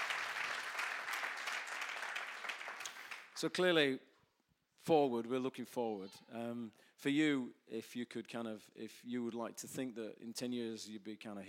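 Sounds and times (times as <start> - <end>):
crowd applause: 0.0 - 3.4
speech: 3.4 - 4.1, 4.8 - 11.4.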